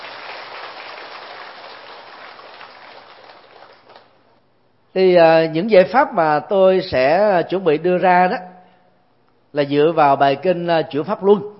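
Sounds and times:
audience applause: 0.0 - 4.1
speech: 5.0 - 8.5, 9.5 - 11.5.

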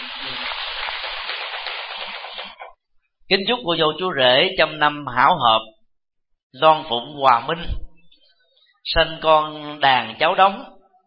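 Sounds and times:
applause: 0.0 - 2.7
speech: 3.3 - 5.7, 6.5 - 7.8, 8.9 - 10.8.

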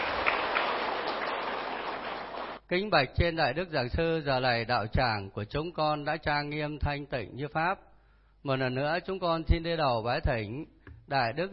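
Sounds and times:
crowd applause: 0.0 - 2.6
speech: 2.7 - 11.5.

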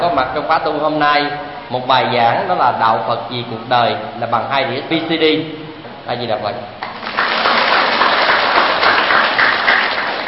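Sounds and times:
speech: 0.0 - 6.8
crowd applauding: 6.8 - 10.2.

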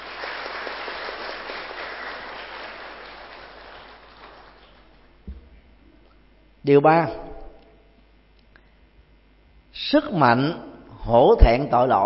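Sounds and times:
crowd applause: 0.0 - 5.1
thump: 5.2 - 5.6
speech: 6.6 - 7.2, 9.9 - 12.0.

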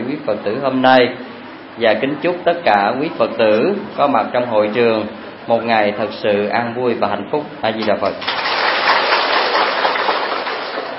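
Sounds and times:
speech: 0.3 - 8.6
audience applause: 8.2 - 10.9.

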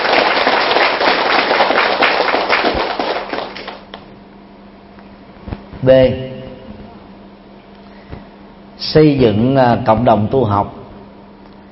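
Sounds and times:
big crowd applause: 0.0 - 4.0
speech: 5.8 - 6.3, 8.9 - 10.8.

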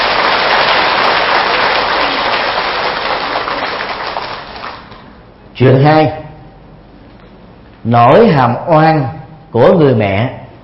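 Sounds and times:
audience applause: 0.0 - 5.0
speech: 5.6 - 6.2, 7.8 - 10.4.

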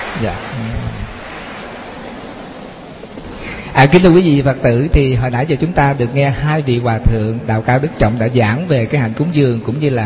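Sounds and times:
audience applause: 0.0 - 2.5
speech: 0.2 - 1.1, 3.8 - 10.0.

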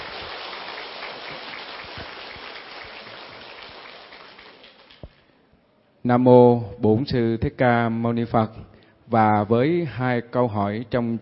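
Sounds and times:
long loud applause: 0.0 - 5.2
speech: 6.0 - 11.2.

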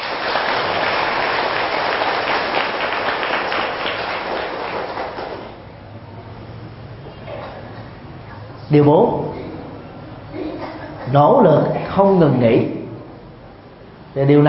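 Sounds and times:
audience applause: 0.0 - 5.6
speech: 8.7 - 9.4, 11.1 - 12.8, 14.2 - 14.4.

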